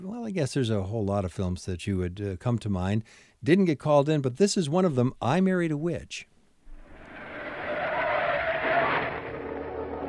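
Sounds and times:
speech: 0.1 - 6.3
car brakes jammed: 6.7 - 10.0
tires skidding: 6.7 - 10.0.

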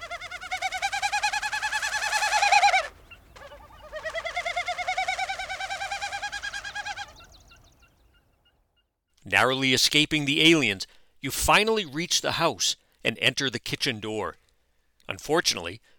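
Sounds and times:
displaying Wilson snipe winnowing with specialized tail feathers: 0.0 - 8.4
speech: 9.3 - 14.4, 15.1 - 15.9.

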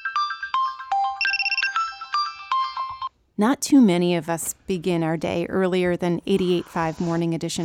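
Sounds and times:
phone alarm going off: 0.0 - 3.1
speech: 3.4 - 7.6.

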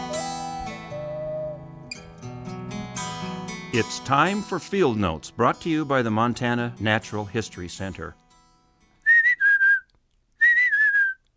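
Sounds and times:
bird song of clear whistled notes: 0.0 - 1.7, 10.4 - 11.2
speech: 3.7 - 8.2.

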